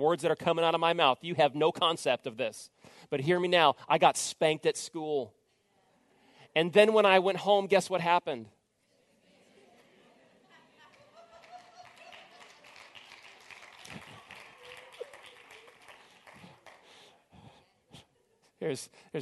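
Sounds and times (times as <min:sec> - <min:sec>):
speech: 0:00.0 - 0:05.4, 0:06.6 - 0:08.6, 0:18.6 - 0:19.2
audience applauding: 0:10.9 - 0:17.2.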